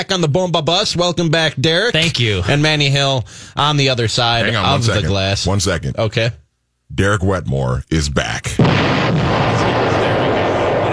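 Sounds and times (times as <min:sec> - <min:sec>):
speech: 0:00.0 - 0:09.8
bomb explosion sound effect: 0:08.6 - 0:10.9.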